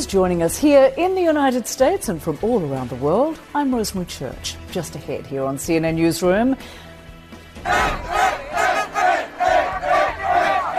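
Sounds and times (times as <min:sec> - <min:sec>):
speech: 0:00.0 - 0:06.8, 0:07.6 - 0:08.2
crowd chanting and roaring in Spain celebrating a World Cup win: 0:07.6 - 0:10.7.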